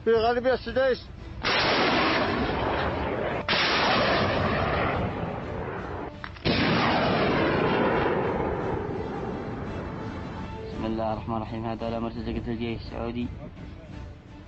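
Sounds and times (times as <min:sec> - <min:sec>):
speech: 0:00.0 - 0:02.5, 0:10.9 - 0:13.8
Katyusha rocket launch salvo fired at enemy positions: 0:01.4 - 0:10.0.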